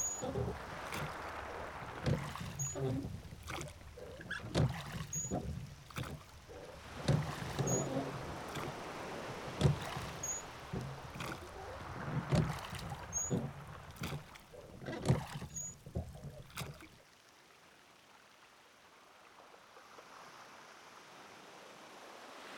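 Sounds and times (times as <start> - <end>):
rowing: 0.0 - 17.0.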